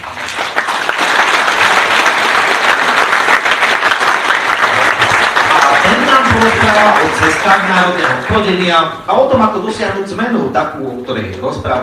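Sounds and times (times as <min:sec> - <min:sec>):
crowd applauding: 0:00.0 - 0:08.9
speech: 0:06.4 - 0:11.8.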